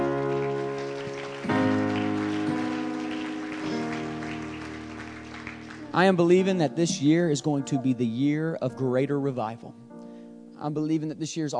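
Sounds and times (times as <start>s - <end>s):
audience clapping hands: 0.0s - 7.1s
speech: 6.0s - 9.8s, 10.6s - 11.5s.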